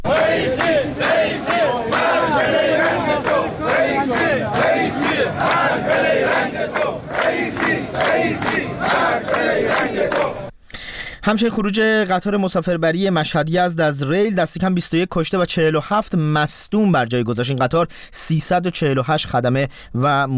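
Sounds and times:
protest crowd chanting slogans: 0.0 - 10.5
speech: 11.2 - 20.3.

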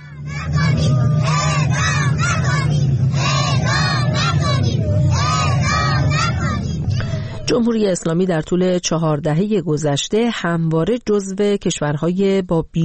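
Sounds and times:
protest crowd: 0.0 - 7.2
children shouting: 0.0 - 7.4
speech: 7.5 - 12.8.

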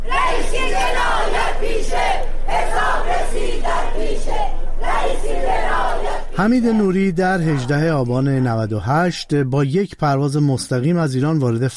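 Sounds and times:
protest crowd chanting slogans: 0.0 - 8.6
speech: 6.4 - 11.7.

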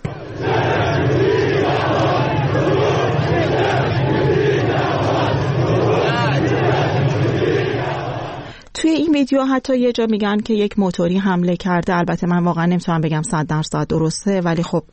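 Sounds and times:
protest crowd chanting in street: 0.0 - 8.6
speech: 9.2 - 14.9.

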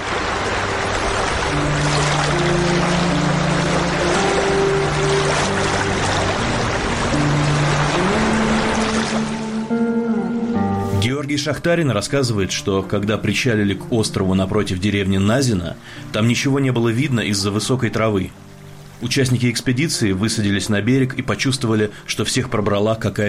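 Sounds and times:
rushing water: 0.0 - 10.0, 10.9 - 23.2
river motorboat engine droning: 0.0 - 11.0
speech: 11.5 - 18.4, 19.0 - 23.2.

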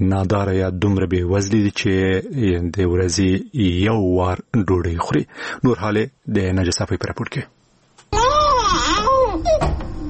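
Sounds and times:
speech: 0.1 - 8.3
malnourished young child crying loudly in Afghanistan: 8.1 - 9.8.

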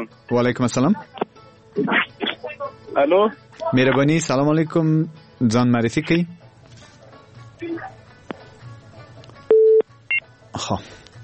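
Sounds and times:
speech: 0.0 - 1.2, 1.8 - 2.0, 2.9 - 6.4, 10.6 - 11.0
shorter higher beep: 9.5 - 9.8
telephone line tone after phone-in caller cut off: 9.5 - 9.8.

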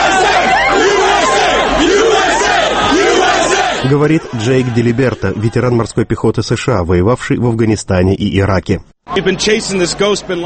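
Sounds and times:
crowds cheering in the streets of Washington and New York: 0.0 - 6.1
speech: 3.9 - 10.4.

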